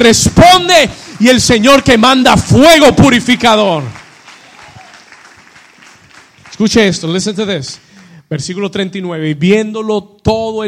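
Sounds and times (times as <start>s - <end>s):
speech: 0.0s - 4.0s, 6.6s - 10.6s
crowd clapping: 0.0s - 8.2s.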